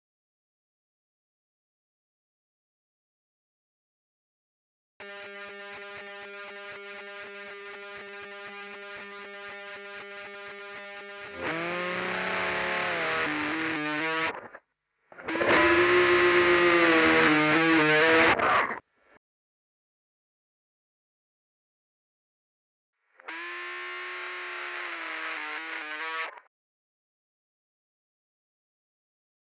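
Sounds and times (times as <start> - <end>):
solo guitar: 5.2 - 14.6, 15.2 - 18.8, 23.7 - 26.4.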